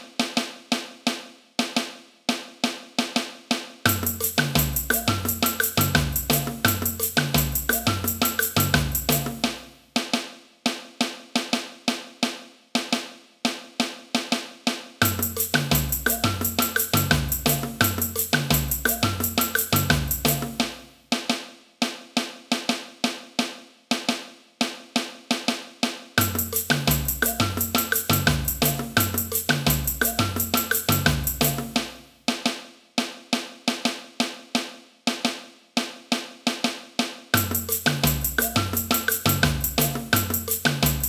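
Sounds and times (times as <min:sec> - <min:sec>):
caixa snare drum: 0:00.0 - 0:41.0
samba music: 0:03.9 - 0:09.8, 0:15.0 - 0:21.4, 0:26.2 - 0:32.6, 0:36.7 - 0:41.0.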